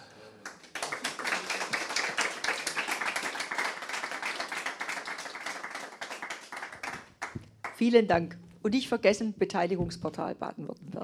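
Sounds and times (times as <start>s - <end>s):
audience applause: 0.4s - 7.8s
speech: 7.8s - 11.0s.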